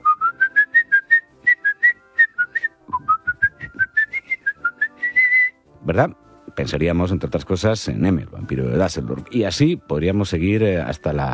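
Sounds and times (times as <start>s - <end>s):
person whistling a lively recognizable film melody: 0.0s - 5.6s
speech: 5.9s - 11.3s.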